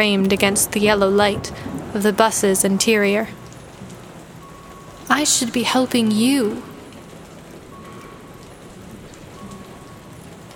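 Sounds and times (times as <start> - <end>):
speech: 0.0 - 3.4, 5.1 - 6.7
faint tonal hum: 0.0 - 10.5
rain falling onto a hard street surface: 0.0 - 10.5.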